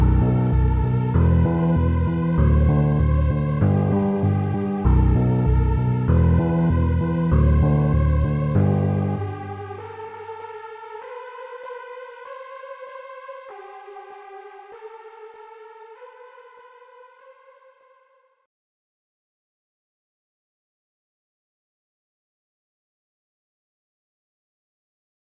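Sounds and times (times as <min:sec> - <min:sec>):
slowed instrumental music: 0:00.0 - 0:11.8.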